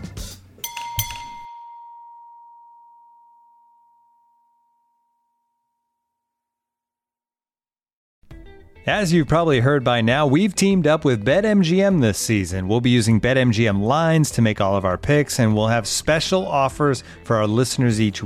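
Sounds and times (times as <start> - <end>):
bell ringing: 0.6 - 5.7
speech: 8.8 - 18.2.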